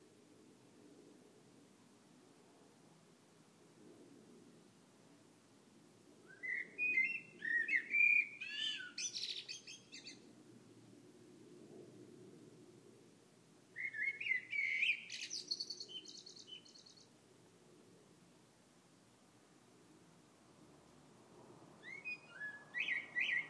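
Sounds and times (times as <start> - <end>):
birdsong: 6.3 - 10.3, 13.8 - 17.1, 21.8 - 23.4.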